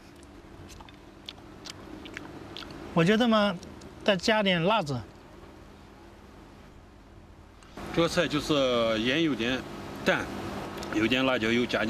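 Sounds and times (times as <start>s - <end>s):
chewing while tasting stir-fried gourd with pork: 0.0s - 2.8s
speech: 3.0s - 5.1s, 8.0s - 11.8s.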